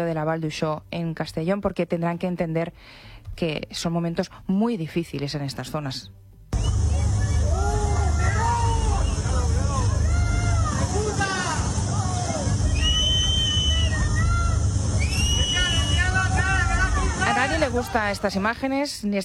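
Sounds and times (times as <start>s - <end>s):
speech: 0.0s - 6.8s, 17.7s - 19.2s
crowd of residents shouting and jeering at an arriving politician: 6.6s - 18.5s.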